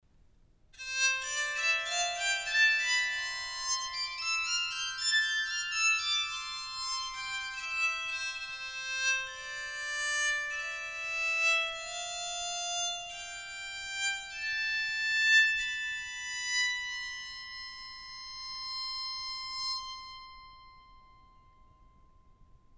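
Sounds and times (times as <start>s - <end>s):
soprano bowed psaltery: 0.8s - 22.7s.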